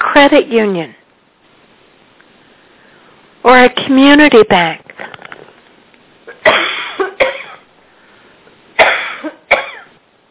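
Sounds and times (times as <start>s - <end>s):
speech: 0.2s - 1.0s, 3.4s - 4.8s
harsh coughing from someone who has choked: 6.3s - 7.7s, 8.8s - 10.0s.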